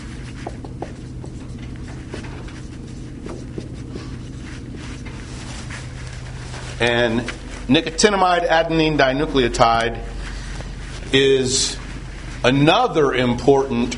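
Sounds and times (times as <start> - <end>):
writing out a molecule name by hand: 0.0 - 6.7
steady noise: 0.0 - 13.9
speech: 6.8 - 10.1, 11.1 - 11.8, 12.4 - 13.9.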